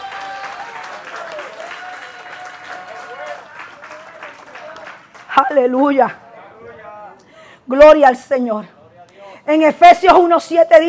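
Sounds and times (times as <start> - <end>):
audience applause: 0.0 - 5.4
speech: 5.4 - 6.2, 7.7 - 8.8, 9.5 - 10.8.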